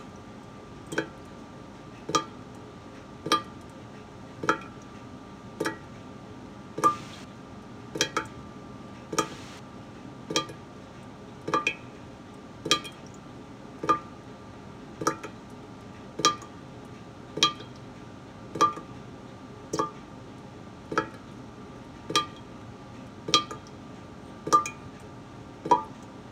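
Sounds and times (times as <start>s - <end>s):
faucet droning low hum with faint tone: 0.0s - 3.7s, 4.3s - 4.9s, 5.5s - 5.9s, 6.7s - 9.6s, 10.3s - 10.8s, 11.4s - 14.2s, 15.0s - 16.7s, 17.4s - 17.9s, 18.5s - 19.0s, 19.7s - 20.0s, 20.9s - 22.6s, 23.2s - 26.3s
faucet dripping: 0.8s - 1.4s, 2.1s - 2.4s, 3.2s - 3.6s, 6.8s - 7.2s, 9.1s - 9.5s, 10.3s - 10.6s, 12.6s - 13.2s, 13.8s - 14.1s, 16.2s - 16.6s, 17.4s - 17.8s, 19.8s - 20.0s, 20.9s - 21.2s, 22.1s - 22.5s, 23.3s - 23.7s, 24.4s - 24.9s, 25.6s - 26.1s.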